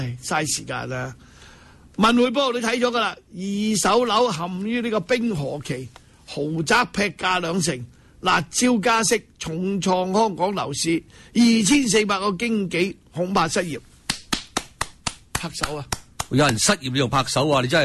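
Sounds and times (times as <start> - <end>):
speech: 0.0 - 1.3, 2.0 - 13.9, 15.4 - 17.8
hand clapping: 14.0 - 16.7.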